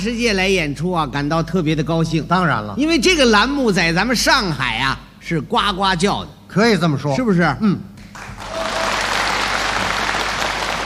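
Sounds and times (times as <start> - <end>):
speech: 0.0 - 7.9
audience applause at a crosstalk comedy performance in Shanghai: 8.2 - 10.8.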